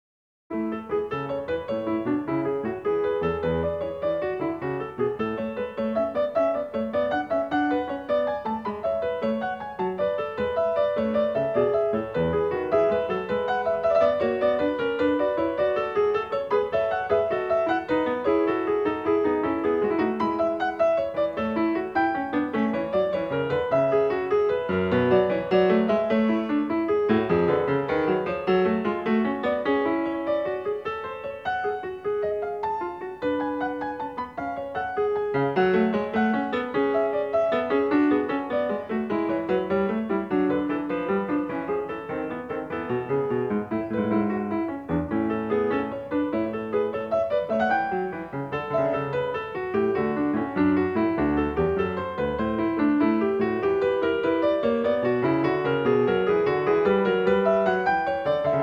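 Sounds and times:
prelude in A major: 0:00.5 - 0:58.6.

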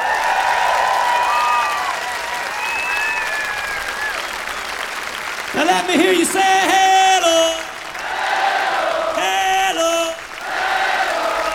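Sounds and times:
high thin whistles or cheers: 0:00.0 - 0:04.9
audience applause: 0:00.0 - 0:11.5
speech: 0:05.7 - 0:06.9.

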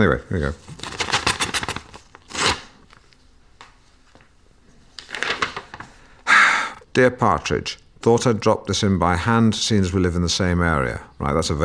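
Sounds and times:
speech: 0:00.0 - 0:00.8, 0:07.0 - 0:11.6
envelope being torn open: 0:00.6 - 0:03.0.

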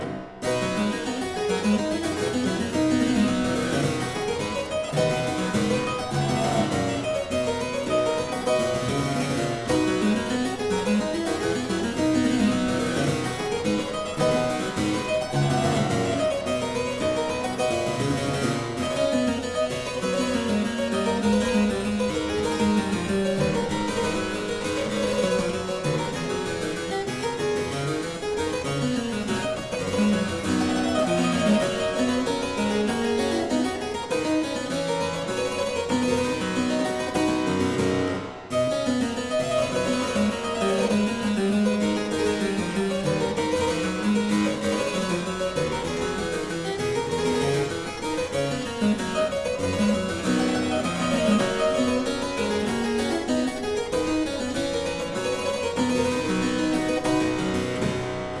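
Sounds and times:
harpsichord playing aria variations in C major: 0:00.0 - 0:58.3.

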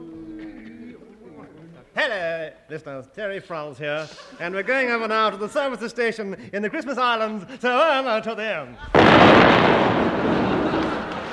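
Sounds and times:
laughter: 0:00.0 - 0:11.3
speech: 0:02.0 - 0:10.4
atom bomb explosion at the Christmas Islands, comedy sound effect: 0:08.9 - 0:11.3.

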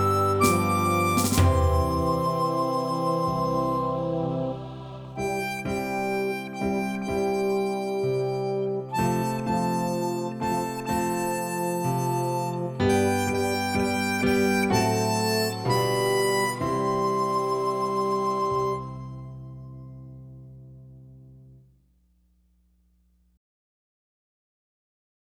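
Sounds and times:
harmonica melody: 0:00.0 - 0:19.7.

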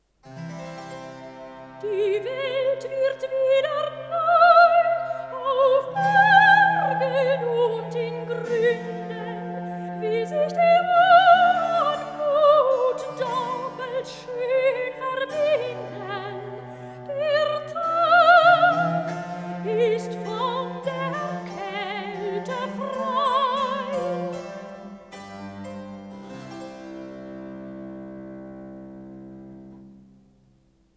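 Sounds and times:
wedding cantata recitative singing: 0:01.8 - 0:25.6.

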